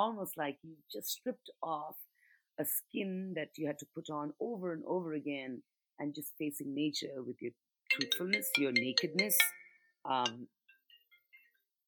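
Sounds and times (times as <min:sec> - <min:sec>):
speech: 0:00.0 - 0:10.6
mobile phone ringing with melodic ringtone: 0:07.9 - 0:09.9.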